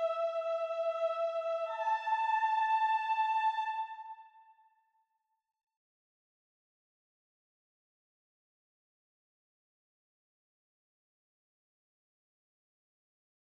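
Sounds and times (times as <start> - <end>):
soprano singing a dance tune: 0.0 - 4.5.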